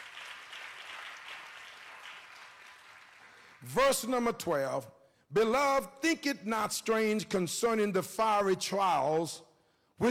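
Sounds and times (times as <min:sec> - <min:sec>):
audience hand clapping: 0:00.0 - 0:03.8
speech: 0:03.6 - 0:10.0.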